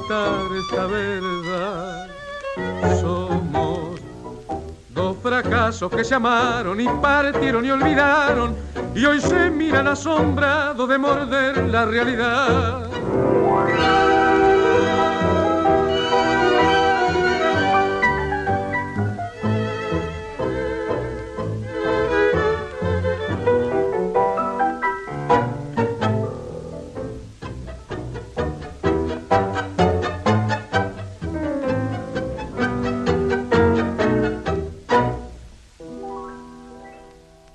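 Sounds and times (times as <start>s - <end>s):
male singer singing tango: 0.0s - 4.3s, 4.9s - 13.0s
tango played by orchestra: 0.0s - 37.5s
speech: 0.1s - 4.0s, 5.0s - 14.0s.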